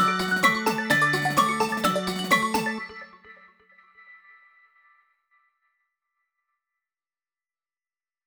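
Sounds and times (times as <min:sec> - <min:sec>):
instrumental ensemble: 0:00.0 - 0:02.9.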